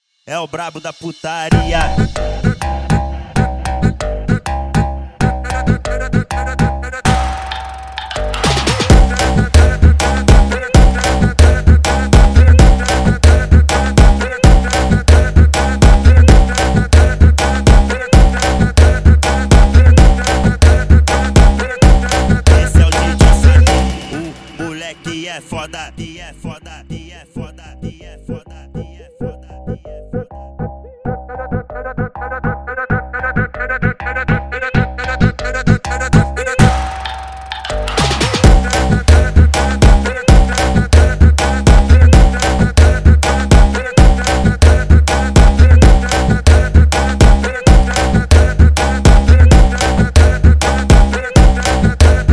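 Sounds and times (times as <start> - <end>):
Brazilian phonk beat: 0.3 - 52.3.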